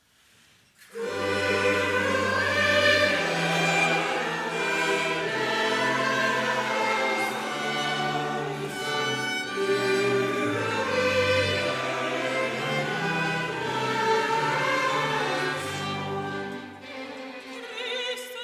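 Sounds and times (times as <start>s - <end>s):
choir singing church music: 0.8s - 18.3s.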